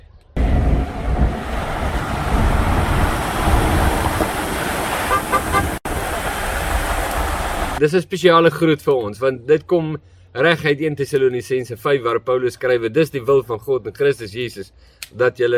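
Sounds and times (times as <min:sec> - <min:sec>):
wind and road rumble: 0:00.3 - 0:07.8
car horn toots: 0:05.0 - 0:05.8
speech: 0:07.8 - 0:15.5.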